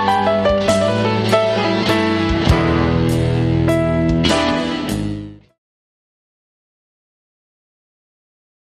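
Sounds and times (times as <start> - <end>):
blues music: 0.0 - 5.6.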